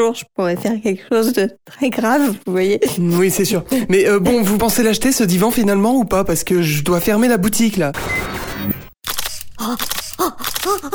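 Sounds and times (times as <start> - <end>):
speech: 0.0 - 8.8, 9.6 - 10.9
camera shutter clicking while taking photos: 8.4 - 10.9.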